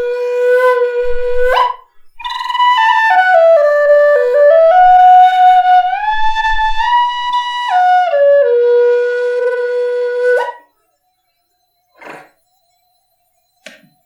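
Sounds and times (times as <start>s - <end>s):
B forest flute of walnut and red beech: 0.0s - 11.0s.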